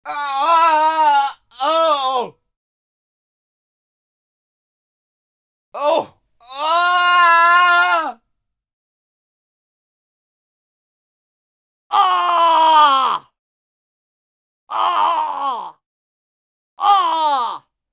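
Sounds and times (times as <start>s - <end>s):
dying man screaming and moaning: 0.0s - 2.4s, 5.8s - 8.2s, 11.9s - 13.3s, 14.7s - 15.8s, 16.8s - 17.7s.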